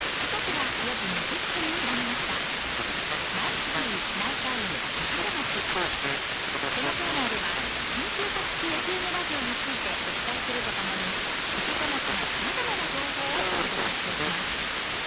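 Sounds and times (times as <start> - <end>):
radio broadcast on 82.8 MHz: 0.0 - 15.0.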